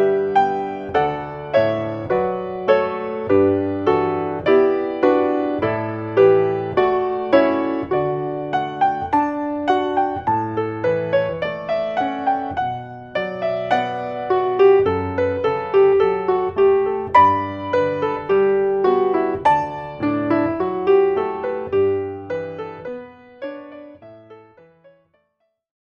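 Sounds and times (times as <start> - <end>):
solo piano wedding music: 0.0 - 25.2.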